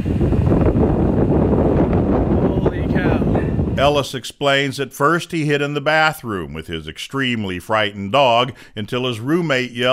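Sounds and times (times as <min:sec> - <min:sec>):
tornado winds touching down: 0:00.0 - 0:04.7
speech: 0:03.8 - 0:09.9.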